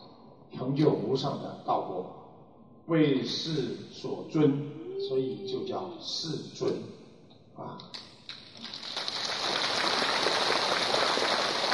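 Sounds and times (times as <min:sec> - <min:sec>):
speech: 0:00.7 - 0:02.2, 0:02.9 - 0:07.0, 0:07.6 - 0:08.8
audience applause: 0:08.6 - 0:11.7.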